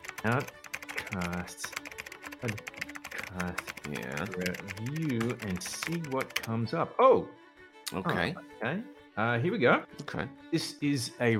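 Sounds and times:
typing on a computer keyboard: 0:00.0 - 0:06.5
speech: 0:00.2 - 0:01.8, 0:02.4 - 0:02.7, 0:03.3 - 0:11.3.

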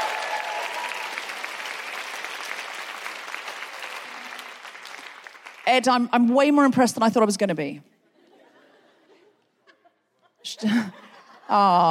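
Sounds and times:
audience applause: 0:00.0 - 0:05.7
speech: 0:05.7 - 0:07.9, 0:10.6 - 0:11.8.

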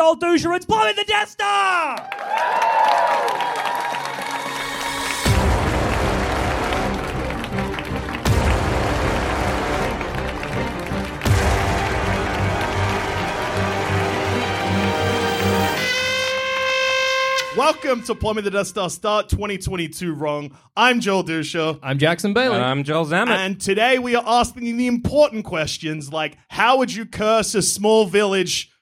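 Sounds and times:
speech: 0:00.0 - 0:03.6, 0:17.6 - 0:28.7
live audience applauding and cheering performers welcomed to the stage: 0:01.7 - 0:17.8.

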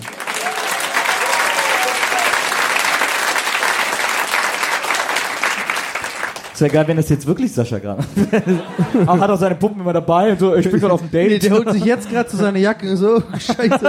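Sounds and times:
audience applause: 0:00.0 - 0:07.0
speech: 0:06.6 - 0:13.8
laughter: 0:08.0 - 0:09.7, 0:10.5 - 0:13.8.

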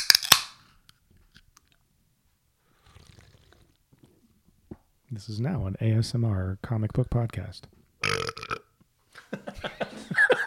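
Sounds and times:
can of Zevia Cola snapped open: 0:00.0 - 0:00.6
speech: 0:05.2 - 0:08.2
laughter: 0:09.2 - 0:10.4.

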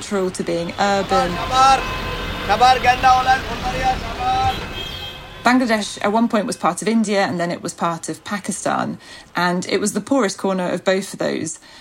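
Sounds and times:
speech: 0:00.0 - 0:04.8, 0:05.4 - 0:11.8
indistinct voices: 0:00.0 - 0:09.0
busy street traffic engine roar: 0:00.0 - 0:09.3
rickshaw, car and bus horns honking: 0:00.4 - 0:07.3.

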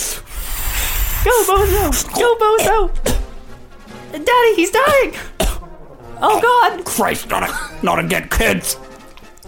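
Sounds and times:
squeaky rubbing of a rubber balloon being twisted into an animal shape: 0:00.6 - 0:02.1
speech: 0:01.2 - 0:03.2, 0:04.1 - 0:05.3, 0:06.2 - 0:08.9.

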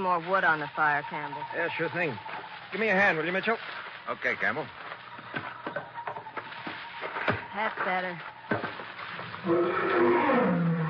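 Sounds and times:
speech: 0:00.0 - 0:04.8, 0:07.6 - 0:08.6, 0:09.4 - 0:10.7
big cat roaring: 0:09.4 - 0:10.8.

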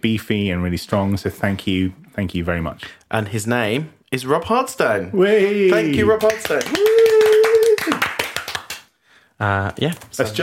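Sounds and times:
speech: 0:00.0 - 0:06.9, 0:09.4 - 0:10.4
hand clapping: 0:05.7 - 0:08.9.

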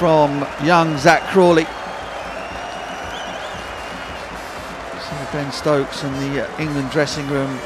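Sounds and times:
speech: 0:00.0 - 0:01.8, 0:05.3 - 0:07.6
cricket stadium crowd applauding a century: 0:00.0 - 0:07.6
whistles: 0:00.8 - 0:04.7.

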